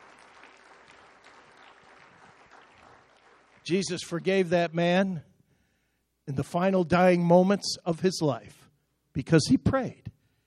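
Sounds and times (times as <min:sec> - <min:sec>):
crowd applauding: 0:00.0 - 0:04.4
speech: 0:03.7 - 0:05.3, 0:06.3 - 0:08.6, 0:09.2 - 0:10.1.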